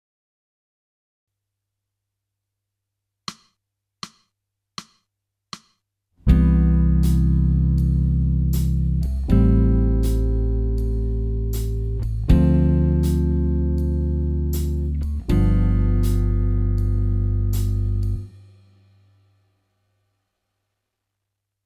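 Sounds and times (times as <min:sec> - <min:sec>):
jazz music: 0:06.3 - 0:18.3.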